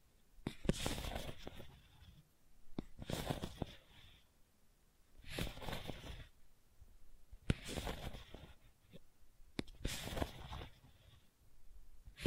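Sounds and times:
gentle scratching: 0.4 - 4.3, 5.2 - 6.4, 7.3 - 11.4.

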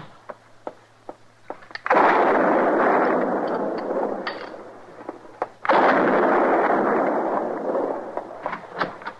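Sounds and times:
gunshots in an old radio western drama: 1.8 - 9.1.

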